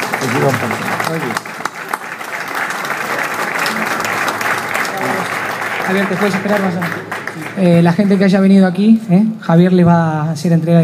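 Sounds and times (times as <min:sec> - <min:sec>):
audience applause: 0:00.0 - 0:08.5
speech: 0:00.3 - 0:01.5, 0:05.9 - 0:10.8.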